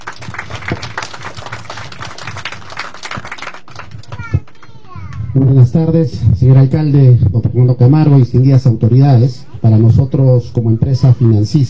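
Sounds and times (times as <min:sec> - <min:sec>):
audience applause: 0:00.0 - 0:05.1
speech: 0:05.4 - 0:11.6.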